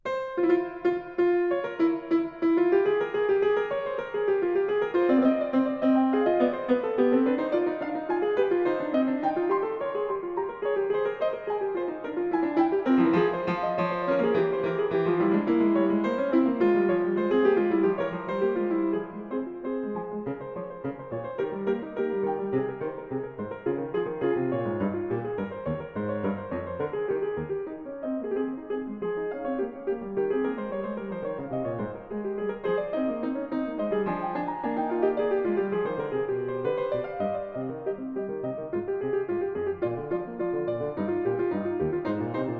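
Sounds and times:
keyboard fugue in F minor: 0.0 - 42.5.

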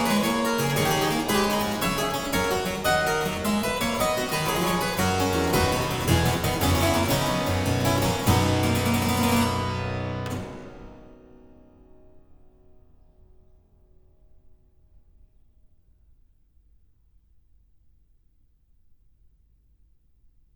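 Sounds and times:
harpsichord playing a gigue in C major: 0.0 - 10.6.

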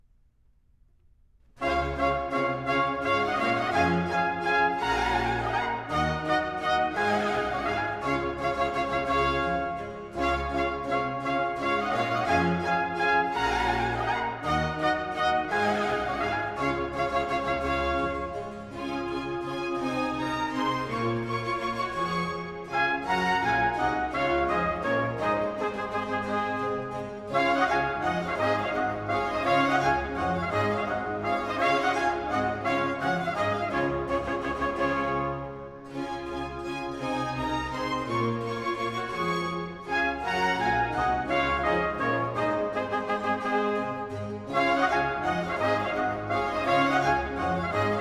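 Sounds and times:
baroque suite sarabande: 1.6 - 47.9.

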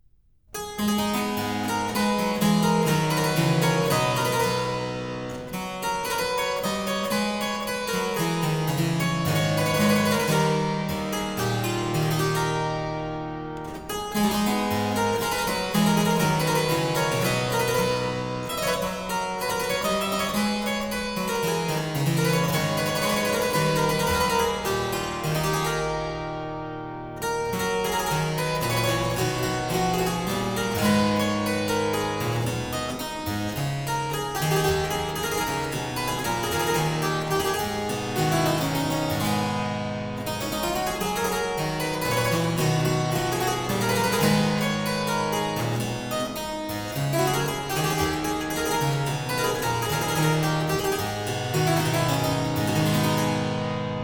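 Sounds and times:
harpsichord courante in A minor: 0.6 - 54.0.

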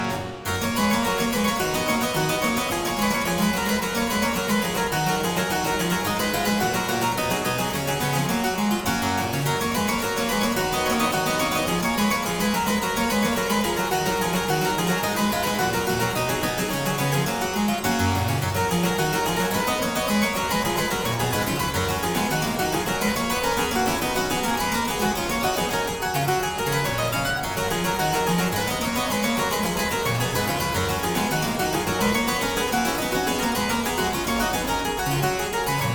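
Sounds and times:
harpsichord piece in G major: 0.0 - 35.9.

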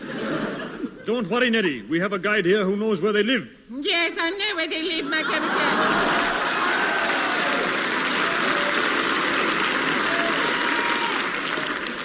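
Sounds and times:
laughter: 0.0 - 1.8, 4.8 - 12.0
speech: 1.1 - 6.2
applause played from a gramophone record: 6.1 - 12.0.

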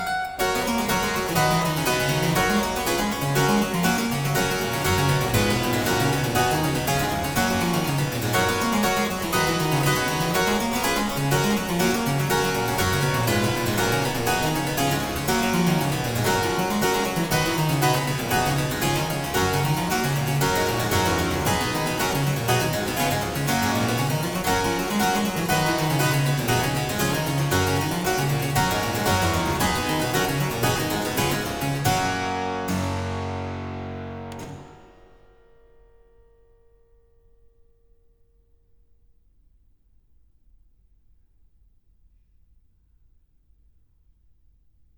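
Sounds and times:
harpsichord piece in G major: 0.0 - 35.5.

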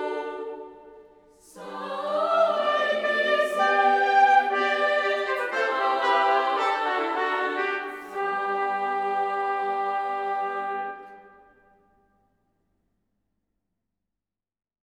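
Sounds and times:
choir singing: 0.0 - 11.5
chamber ensemble: 0.0 - 11.7.

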